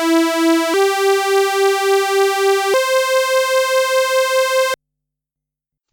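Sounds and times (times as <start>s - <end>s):
analog synthesizer sawtooth unison tone: 0.2s - 4.8s.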